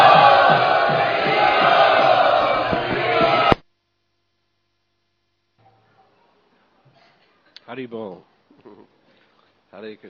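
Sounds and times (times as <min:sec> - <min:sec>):
crowd chanting in welcome at the Sri Sri Radha Gopinath Temple: 0:00.0 - 0:03.6
speech: 0:07.8 - 0:08.9, 0:09.7 - 0:10.0.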